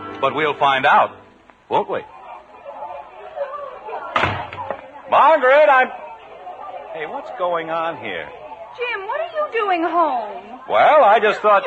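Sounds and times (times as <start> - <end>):
speech: 0.2 - 2.2, 5.1 - 6.0, 6.9 - 11.6
front door of a white frame house slamming: 4.1 - 4.8.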